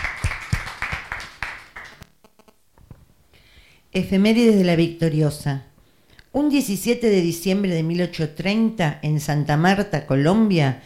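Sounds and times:
audience applause: 0.0 - 2.0
speech: 4.0 - 5.7, 6.3 - 10.8.

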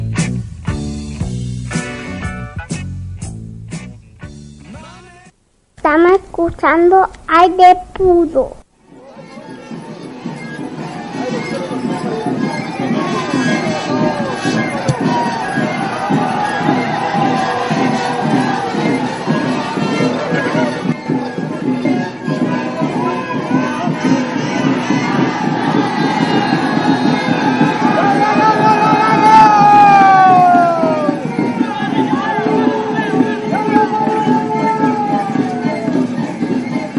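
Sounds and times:
speech: 6.0 - 8.6
crowd murmuring at a Mapuche ceremony: 8.9 - 36.9.

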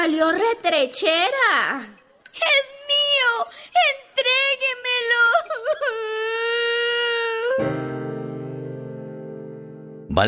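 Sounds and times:
speech: 0.0 - 2.8
girl crying: 2.5 - 7.8.

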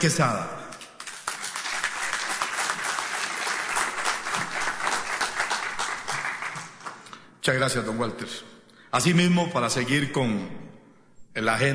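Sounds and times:
speech: 0.0 - 0.6, 7.4 - 10.8, 11.4 - 11.7
audience applause: 0.8 - 7.1.

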